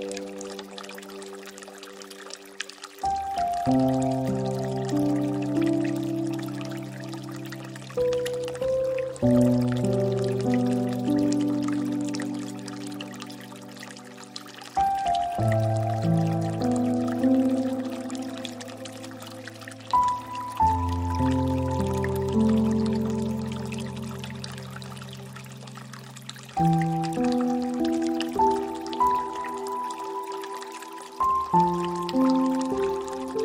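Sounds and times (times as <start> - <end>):
piano: 0.0 - 33.4.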